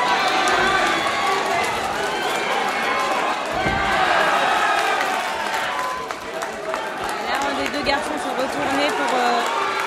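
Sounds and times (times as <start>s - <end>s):
crowd cheering and encouraging a fight: 0.0s - 9.8s
thud: 3.5s - 4.0s.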